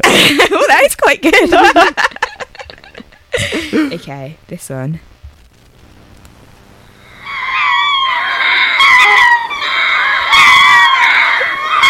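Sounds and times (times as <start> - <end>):
laughter: 0.0 - 4.0
speech: 0.9 - 2.0, 4.1 - 5.2
group of monkeys calling: 7.2 - 11.8.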